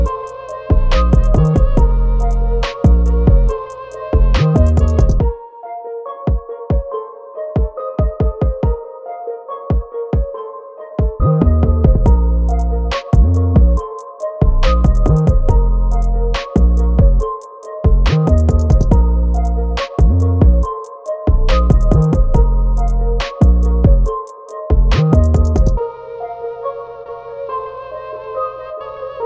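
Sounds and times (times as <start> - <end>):
instrumental beat: 0.0 - 5.4, 6.3 - 7.0, 7.6 - 8.9, 9.7 - 10.4, 11.0 - 25.8.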